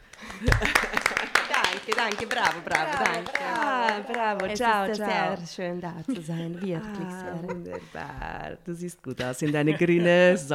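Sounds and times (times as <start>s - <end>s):
sharp irregular hand claps: 0.0s - 5.1s
overlapping voices: 0.0s - 8.5s
laughter: 0.2s - 5.4s, 6.1s - 8.4s, 9.4s - 10.5s
speech: 0.4s - 10.5s.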